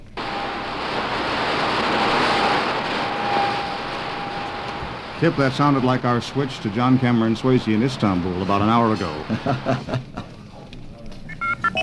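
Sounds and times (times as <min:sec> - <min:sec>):
radio signal from Jupiter, a thin steady high whistle: 0:00.2 - 0:00.9, 0:01.8 - 0:08.8
dense radio static: 0:00.2 - 0:10.0
speech: 0:05.2 - 0:10.2
laughter: 0:05.5 - 0:10.7.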